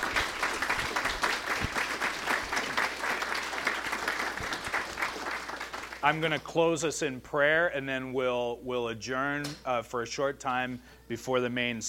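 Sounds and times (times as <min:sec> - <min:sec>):
round of applause: 0:00.0 - 0:06.4
speech: 0:06.0 - 0:11.8.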